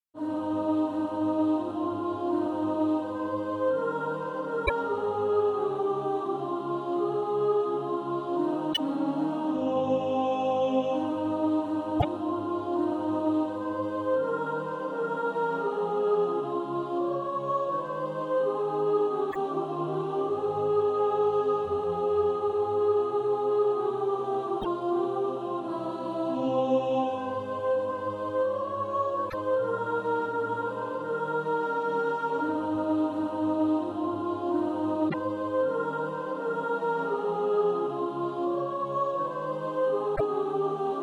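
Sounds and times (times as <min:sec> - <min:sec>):
soprano singing: 0:00.2 - 0:41.0.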